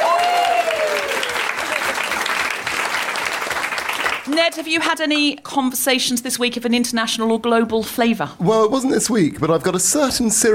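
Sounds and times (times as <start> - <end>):
person whooping or cheering: 0.0 - 1.9
studio audience applause: 0.0 - 4.6
speech: 4.3 - 10.5.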